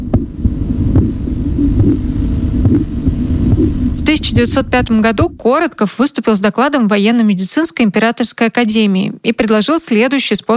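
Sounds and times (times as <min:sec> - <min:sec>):
pulsing blood vessel sounds through stethoscope: 0:00.0 - 0:05.6
constant dull hum: 0:00.0 - 0:05.8
speech: 0:04.1 - 0:10.5.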